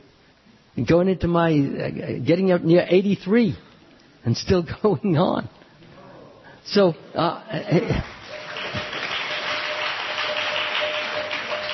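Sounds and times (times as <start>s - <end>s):
speech: 0.8s - 3.6s, 4.2s - 5.6s, 6.6s - 8.9s
audience applause: 8.0s - 11.7s.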